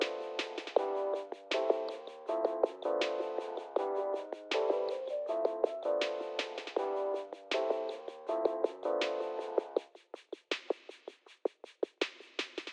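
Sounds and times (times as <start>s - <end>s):
melodic high-filtered reception room music: 0.0s - 9.8s.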